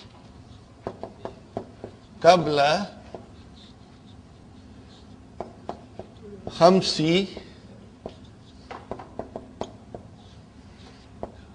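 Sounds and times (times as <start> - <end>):
handwriting during a lesson: 0.0 - 7.2, 8.0 - 11.5
writing tool tapping: 0.8 - 2.1, 3.0 - 3.4, 5.4 - 10.1, 11.2 - 11.4
speech: 2.2 - 3.0, 6.6 - 7.4.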